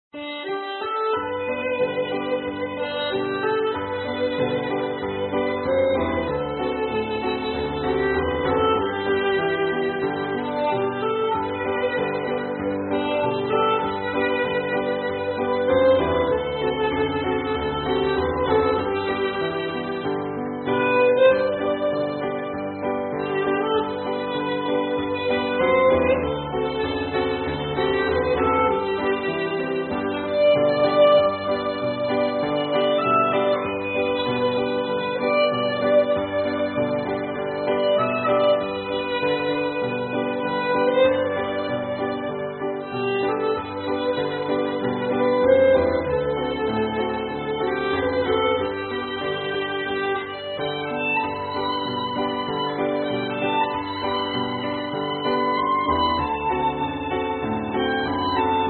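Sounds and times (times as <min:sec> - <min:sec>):
instrumental hymn: 0:00.2 - 0:58.6.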